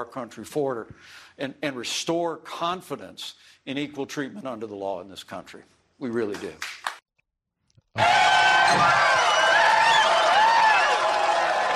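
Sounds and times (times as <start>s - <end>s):
speech: 0.0s - 6.8s, 8.0s - 9.2s
audience clapping: 6.3s - 7.0s, 8.0s - 11.7s.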